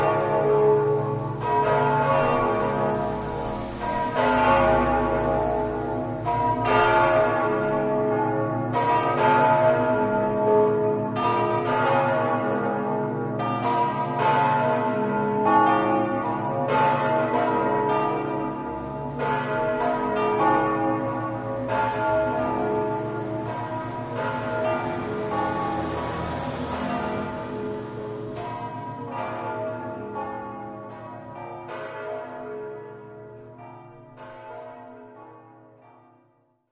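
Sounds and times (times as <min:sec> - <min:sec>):
church bells ringing in Tricesimo: 0:00.0 - 0:36.6.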